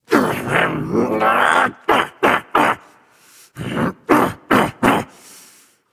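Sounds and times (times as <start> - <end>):
grumbling: 0.1 - 3.0, 3.6 - 5.2.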